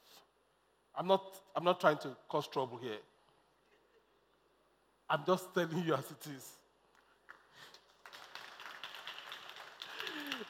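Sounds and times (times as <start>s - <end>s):
speech: 1.0s - 3.1s, 5.1s - 6.6s
women clapping: 6.9s - 10.4s.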